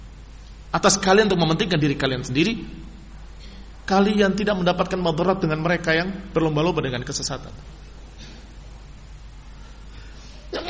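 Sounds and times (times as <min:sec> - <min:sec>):
low steady hum: 0:00.0 - 0:10.6
speech: 0:00.7 - 0:02.8, 0:03.9 - 0:07.8
person sneezing: 0:10.2 - 0:10.6.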